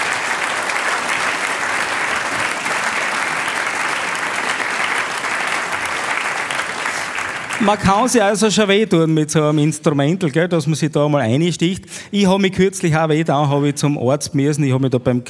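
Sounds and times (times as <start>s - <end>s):
audience applause: 0.0s - 8.8s
speech: 7.6s - 15.2s.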